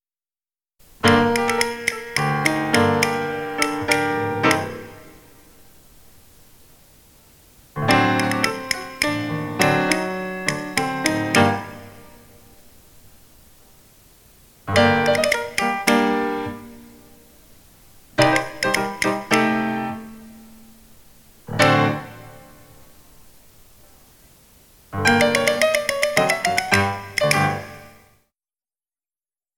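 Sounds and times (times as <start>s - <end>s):
slow rhythmic tapping: 0.9s - 5.4s, 7.8s - 12.4s, 14.6s - 17.1s, 18.1s - 22.8s, 25.0s - 28.0s.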